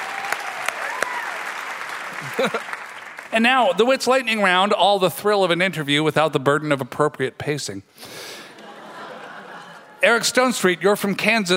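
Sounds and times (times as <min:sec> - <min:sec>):
cheers and whistles: 0:00.0 - 0:01.6
audience applause: 0:00.0 - 0:03.4
laughter: 0:02.1 - 0:02.8, 0:08.4 - 0:10.3
speech: 0:02.2 - 0:08.3, 0:10.0 - 0:11.5.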